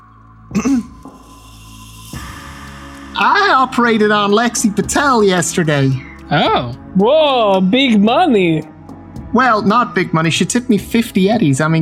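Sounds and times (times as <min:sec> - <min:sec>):
woman softly clearing her throat: 0:00.5 - 0:01.0
speech: 0:03.2 - 0:08.7, 0:09.3 - 0:11.8.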